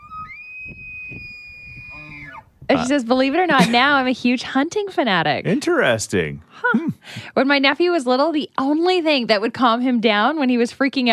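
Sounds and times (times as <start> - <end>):
elk bugling call: 0.0 - 3.5
speech: 2.0 - 11.1.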